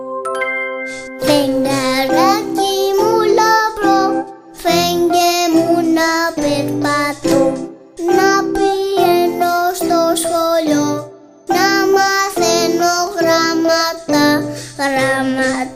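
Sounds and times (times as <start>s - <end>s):
Greek children's song: 0.4s - 15.7s.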